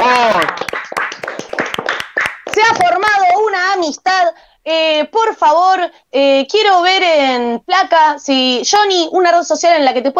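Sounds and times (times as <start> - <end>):
loud round of applause: 0.0 - 3.2
speech: 3.8 - 10.1.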